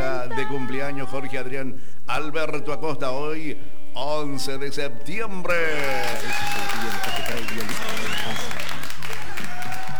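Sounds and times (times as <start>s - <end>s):
speech: 0.4s - 8.5s
loud applause: 5.7s - 9.9s
high whoops: 5.8s - 9.9s.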